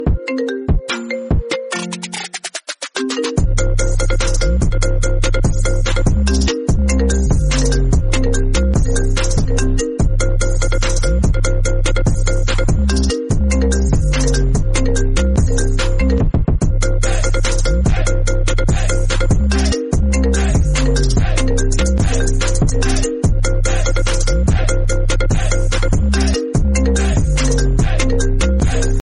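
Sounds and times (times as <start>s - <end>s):
electro ringtone: 0.0s - 29.0s.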